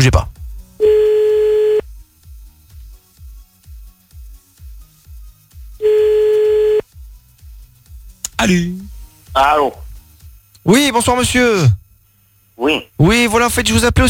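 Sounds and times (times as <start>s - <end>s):
speech: 0.0s - 0.3s, 8.4s - 9.8s, 10.6s - 11.8s, 12.6s - 14.0s
ringback tone of an outgoing telephone call: 0.8s - 1.8s, 5.8s - 6.8s.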